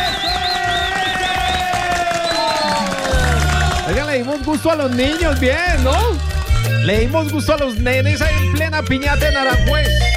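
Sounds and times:
bright whistling tones: 0.0s - 3.1s
crowd applauding and cheering for children at a piñata garage party in Aranjuez: 0.0s - 7.2s
speech: 4.2s - 10.1s.

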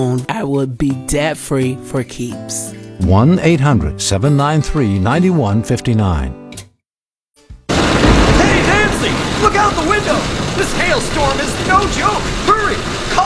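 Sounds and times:
speech: 0.0s - 6.4s, 9.0s - 13.2s
loud steady downpour of storm rain: 7.7s - 13.2s
low rumble of thunder: 7.7s - 13.2s.

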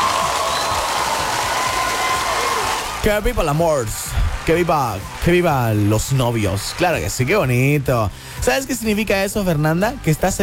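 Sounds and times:
applause: 0.0s - 7.8s
speech: 3.0s - 10.4s.

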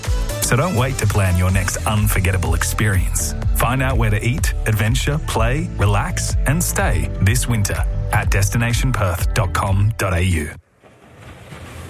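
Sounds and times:
speech: 0.5s - 10.6s
ocean waves washing in off Albany: 10.6s - 11.8s.

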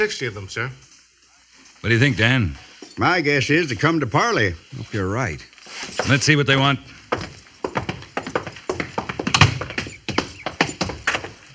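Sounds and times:
speech: 0.0s - 0.9s, 1.8s - 7.3s
hoofbeats of a single horse ridden toward a fort gate: 5.8s - 11.5s.

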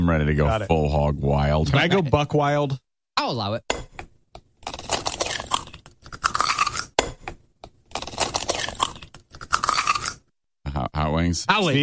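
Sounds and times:
speech: 0.0s - 3.8s, 10.8s - 11.8s
egg being cracked open: 3.8s - 10.3s.

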